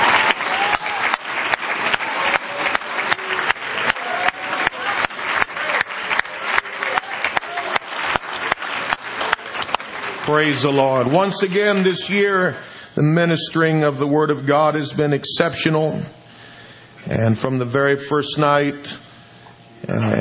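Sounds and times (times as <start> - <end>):
audience applause: 0.0 - 12.3
speech: 10.3 - 16.2, 17.1 - 19.0, 19.9 - 20.2.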